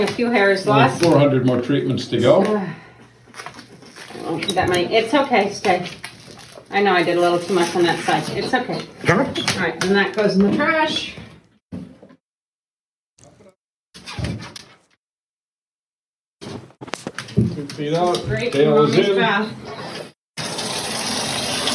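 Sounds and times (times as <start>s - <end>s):
speech: 0.0s - 2.8s, 4.2s - 6.0s, 6.7s - 11.2s, 17.8s - 19.7s
tap water running for a dog's bath: 20.4s - 21.7s.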